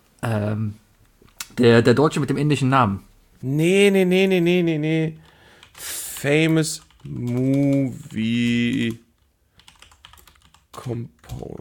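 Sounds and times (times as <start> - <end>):
speech: 0.2 - 0.8, 1.6 - 9.0, 10.8 - 11.5
typing on a computer keyboard: 5.6 - 11.5.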